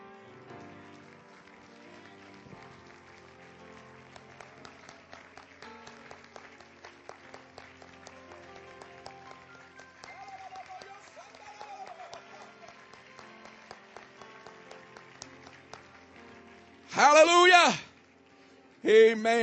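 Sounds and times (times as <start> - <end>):
audience clapping hands: 0.0 - 19.4
speech: 17.0 - 17.8, 18.8 - 19.4.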